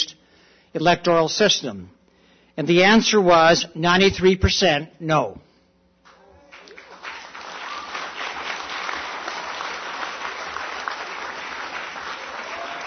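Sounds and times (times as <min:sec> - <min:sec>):
speech: 0:00.7 - 0:02.0, 0:02.6 - 0:05.5
audience applause: 0:06.4 - 0:12.8.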